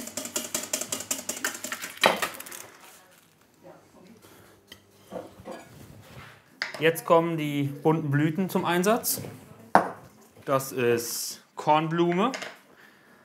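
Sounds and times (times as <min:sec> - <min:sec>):
whisk beating hollandaise sauce in a metal bowl: 0:00.0 - 0:02.0
speech: 0:06.8 - 0:09.4, 0:10.5 - 0:12.5.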